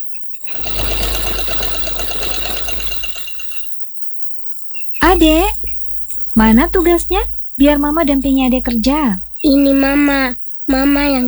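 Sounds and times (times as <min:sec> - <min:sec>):
sewing machine whirring at home: 0:00.4 - 0:03.8
speech: 0:05.1 - 0:05.6, 0:06.4 - 0:11.2.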